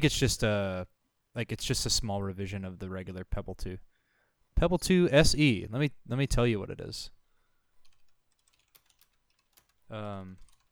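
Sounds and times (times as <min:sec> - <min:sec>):
speech: 0:00.0 - 0:03.9, 0:04.6 - 0:07.2, 0:09.9 - 0:10.4
light keystrokes on a computer keyboard: 0:07.8 - 0:10.7.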